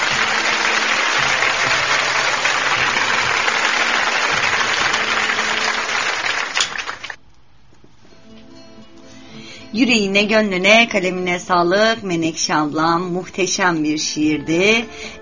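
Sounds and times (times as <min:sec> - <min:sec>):
applause: 0:00.0 - 0:07.2
speech: 0:09.8 - 0:15.2.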